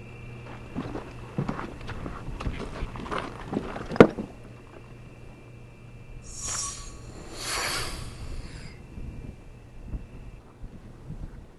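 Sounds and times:
wind: 0.0s - 11.5s
crunching footsteps walking into the wind: 0.4s - 5.0s
air sample flask opening with hissing: 6.2s - 9.2s.

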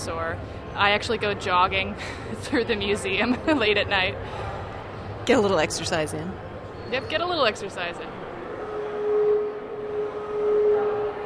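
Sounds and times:
speech: 0.0s - 4.5s, 5.3s - 8.2s
coal mine whistle: 8.6s - 11.2s.

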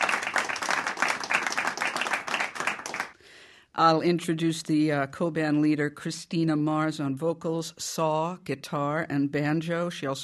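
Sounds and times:
small studio audience in Studio 4A applauding a band: 0.0s - 3.2s
speech: 3.8s - 10.2s.

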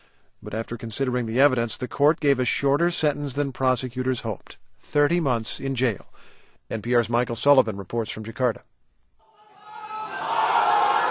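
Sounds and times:
speech: 0.4s - 8.7s
hundreds of supporters cheering a cleric in a courtroom in Jakarta: 9.2s - 11.1s.

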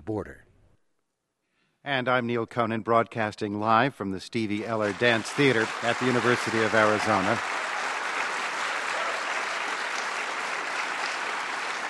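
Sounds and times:
speech: 0.1s - 0.4s, 1.8s - 7.6s
live audience applause at the Stevie Eller Dance Theater: 4.7s - 11.8s.

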